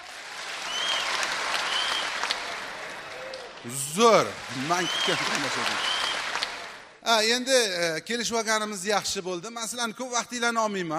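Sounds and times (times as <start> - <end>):
audience clapping and cheering rehearsing an applause cue: 0.0 - 7.0
speech: 3.6 - 6.1, 7.1 - 10.9.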